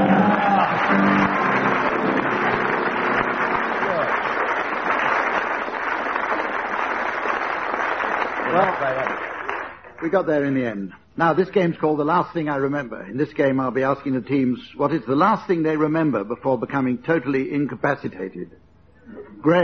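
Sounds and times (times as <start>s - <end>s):
prolonged audience applause: 0.0s - 10.2s
speech: 10.1s - 19.6s.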